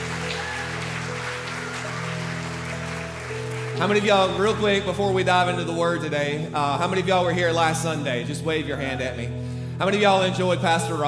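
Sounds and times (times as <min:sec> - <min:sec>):
audience hand clapping: 0:00.0 - 0:05.0
speech: 0:03.8 - 0:11.0.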